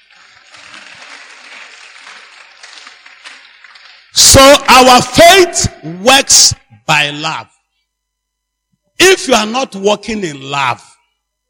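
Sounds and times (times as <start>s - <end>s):
audience clapping: 0.0s - 4.7s
speech: 4.2s - 7.5s, 9.0s - 10.9s.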